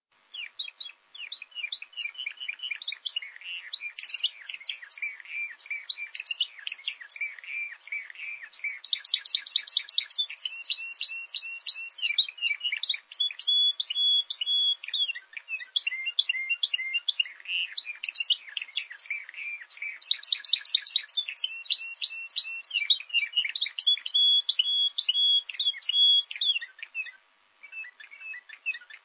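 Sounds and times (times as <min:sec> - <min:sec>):
bird song with sharp chirps, trills and twisting whistles: 0:00.2 - 0:29.0.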